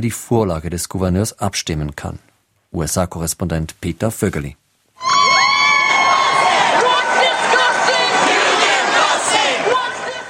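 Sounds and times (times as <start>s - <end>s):
speech: 0.0s - 5.1s
protesting crowd in the Capitol of Madison: 5.0s - 10.2s.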